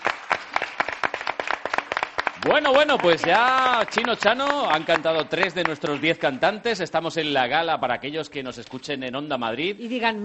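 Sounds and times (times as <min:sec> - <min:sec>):
audience applause: 0:00.0 - 0:06.4
speech: 0:02.4 - 0:10.2.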